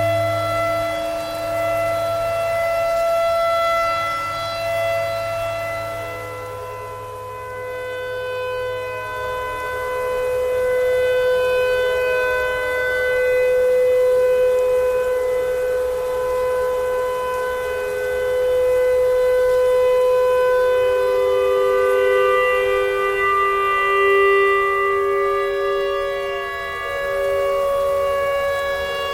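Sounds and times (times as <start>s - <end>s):
clarinet: 0.0s - 29.1s
tornado siren: 0.0s - 29.1s.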